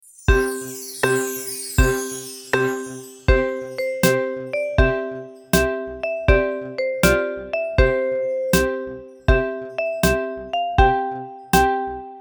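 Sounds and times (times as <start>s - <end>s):
metallophone playing: 0.3s - 12.1s.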